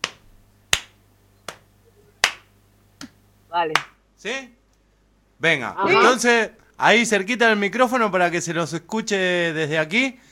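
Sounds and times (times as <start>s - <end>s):
body percussion chest slaps: 0.0s - 4.0s
body percussion hand claps: 0.0s - 4.0s
speech: 3.5s - 4.6s, 5.4s - 10.2s.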